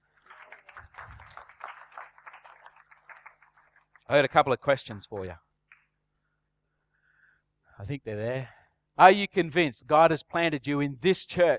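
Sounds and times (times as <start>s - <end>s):
audience clapping: 0.0s - 6.0s
speech: 4.1s - 5.4s, 7.8s - 11.5s.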